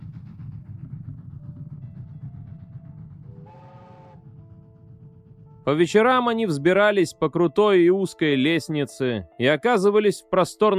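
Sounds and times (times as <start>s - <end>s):
train rumbling along rails: 0.0s - 7.5s
bright multi-toned train whistle: 3.3s - 4.5s
speech: 5.7s - 10.7s.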